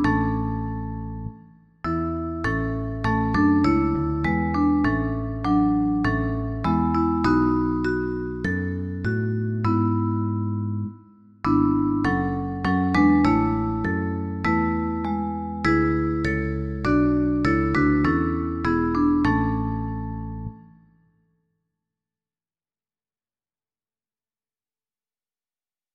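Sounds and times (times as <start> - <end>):
bass guitar: 0.0 - 10.9, 11.5 - 20.6
vibraphone: 0.0 - 20.7.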